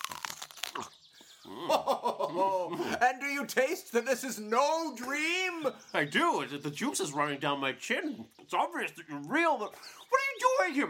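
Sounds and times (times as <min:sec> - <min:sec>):
biting into a banana: 0:00.0 - 0:01.0
laughter: 0:01.5 - 0:03.2
speech: 0:01.8 - 0:10.8.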